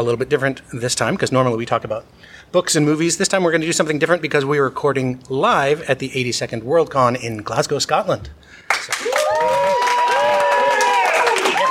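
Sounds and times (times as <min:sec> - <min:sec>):
speech: 0:00.0 - 0:09.5
live audience applauding: 0:08.7 - 0:11.6.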